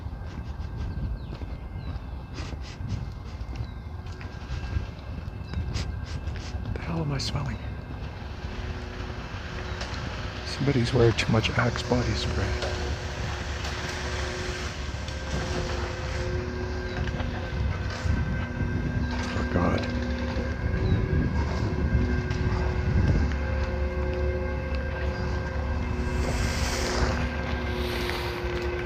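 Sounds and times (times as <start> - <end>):
gusts of wind noise: 0.0 - 28.8
rough rumble: 4.3 - 28.8
speech: 7.0 - 7.7, 10.6 - 12.8
cement mixing truck engine low-pitched whine: 7.8 - 28.8.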